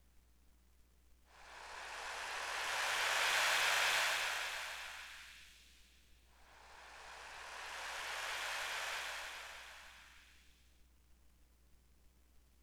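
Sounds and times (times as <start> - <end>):
waves: 1.5 - 5.3, 6.4 - 10.3.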